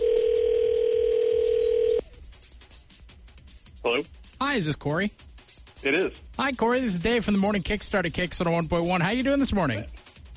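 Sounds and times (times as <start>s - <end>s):
telephone dial tone: 0.0s - 2.0s
speech: 3.9s - 10.0s.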